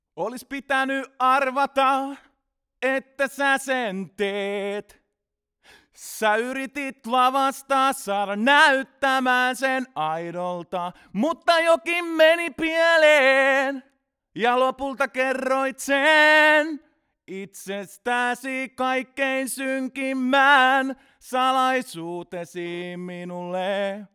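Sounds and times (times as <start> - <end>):
man singing: 0.2 - 5.0, 6.0 - 24.1.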